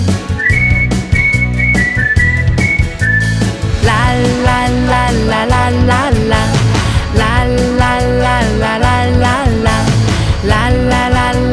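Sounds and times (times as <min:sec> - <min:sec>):
music with beat and bass line: 0:00.0 - 0:11.5
person whistling a tune: 0:00.3 - 0:03.5.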